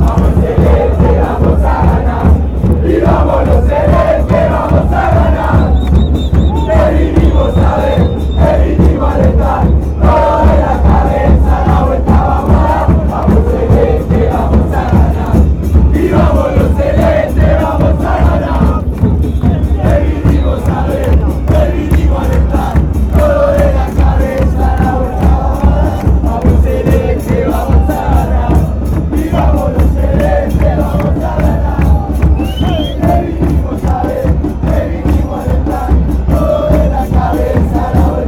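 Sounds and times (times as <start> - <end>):
fans chanting: 0.0 - 38.2.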